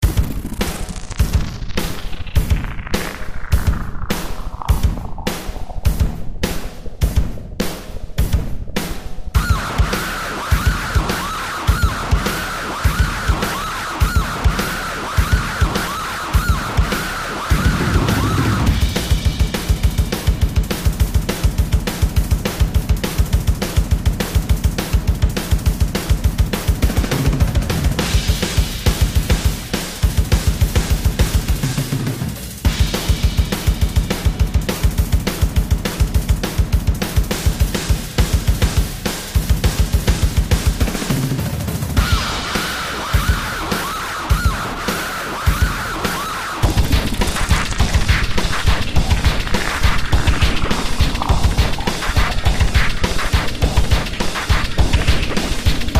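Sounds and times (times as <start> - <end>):
sound effects: 0.0 - 18.9, 42.0 - 55.9
drums: 0.0 - 55.9.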